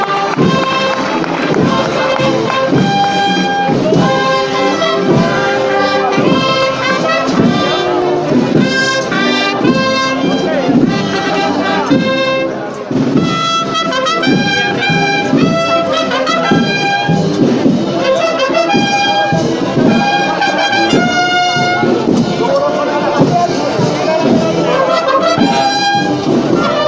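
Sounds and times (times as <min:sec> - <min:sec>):
processional band playing a Holy Week march: 0:00.0 - 0:26.8.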